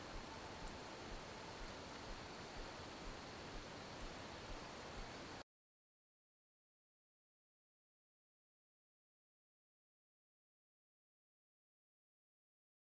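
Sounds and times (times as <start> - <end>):
wind in a forest: 0.0 - 5.4.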